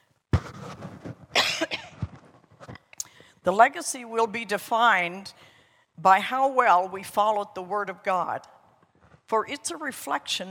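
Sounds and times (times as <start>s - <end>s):
dry coughing from someone with allergies: 1.4s - 2.1s
speech: 3.4s - 8.6s, 9.3s - 10.4s.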